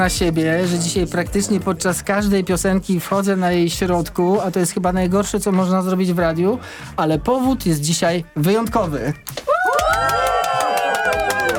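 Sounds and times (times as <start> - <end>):
speech: 0.0 - 9.4
listeners applauding and cheering: 9.3 - 11.5.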